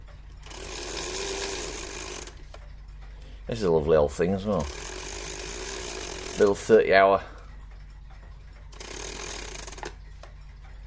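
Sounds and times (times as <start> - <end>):
clock ticking: 0.0 - 10.8
cuckoo clock being wound: 0.4 - 3.1, 3.9 - 6.9, 8.6 - 10.6
speech: 3.5 - 4.9, 6.4 - 7.3.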